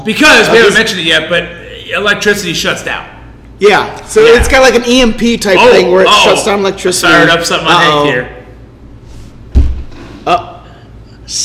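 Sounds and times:
speech: 0.0 - 8.4, 10.3 - 10.5
heavy boots thudding on the floor of a brewery: 9.5 - 9.9.

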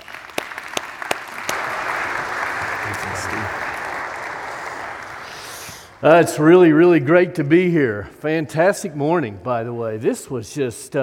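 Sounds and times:
church congregation applauding to welcome a guest preacher: 0.0 - 6.6
speech: 3.2 - 3.7, 6.0 - 11.0.

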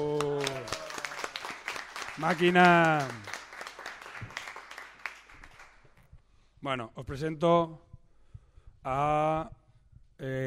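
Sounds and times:
audience applause: 0.0 - 5.9
speech: 2.2 - 3.3, 6.6 - 7.9, 8.8 - 9.6, 10.2 - 10.4.

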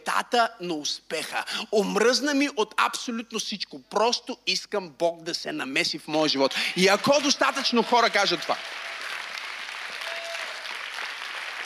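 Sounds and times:
speech: 0.0 - 8.9
audience applause: 6.6 - 11.6.

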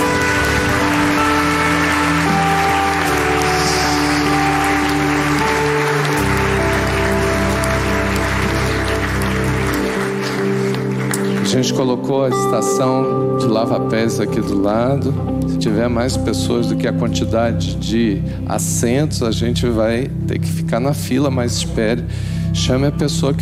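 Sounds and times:
audience applause: 0.0 - 11.8
sustained keyboard chords: 0.0 - 23.4
speech: 11.6 - 23.4.

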